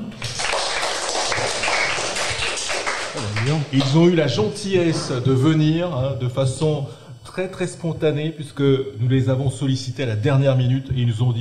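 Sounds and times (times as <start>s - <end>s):
audience applauding guests: 0.0s - 4.1s
speech: 3.4s - 11.3s.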